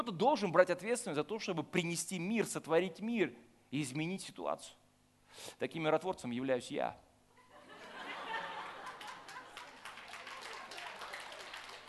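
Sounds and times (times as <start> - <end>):
speech: 0.0 - 7.0
faint laughter: 7.4 - 9.7
audience applause: 8.4 - 11.8.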